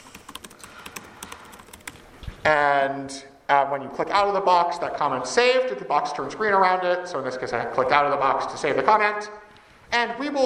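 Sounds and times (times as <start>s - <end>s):
typing a comment on a computer keyboard: 0.0s - 2.0s
speech: 2.4s - 10.4s.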